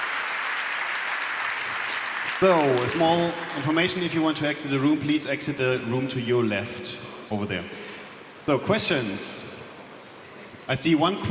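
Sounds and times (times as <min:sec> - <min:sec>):
audience applause: 0:00.0 - 0:04.1
speech: 0:02.4 - 0:07.8, 0:08.5 - 0:09.5, 0:10.7 - 0:11.2.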